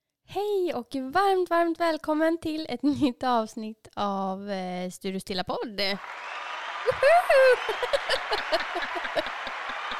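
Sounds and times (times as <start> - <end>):
speech: 0.4 - 9.5
applause sound effect from button: 5.9 - 9.9
laughter: 6.7 - 9.9.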